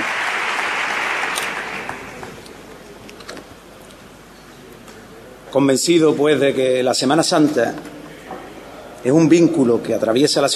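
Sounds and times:
crowd ovation applause: 0:00.0 - 0:02.6
speech: 0:05.5 - 0:08.0, 0:09.0 - 0:10.5.

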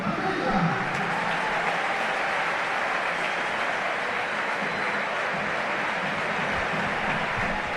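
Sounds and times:
stadium crowd applause: 0:00.7 - 0:07.7.

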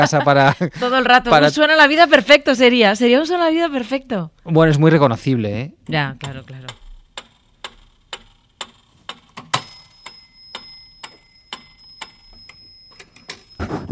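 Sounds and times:
speech: 0:00.0 - 0:06.8
metronome ticking: 0:05.9 - 0:13.6
sustained high ringing tone: 0:09.5 - 0:13.9.

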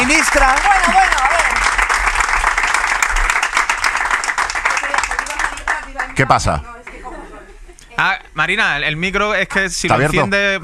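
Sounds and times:
audience applause: 0:00.0 - 0:06.5
speech: 0:00.1 - 0:01.0, 0:06.2 - 0:06.7, 0:08.0 - 0:10.6.

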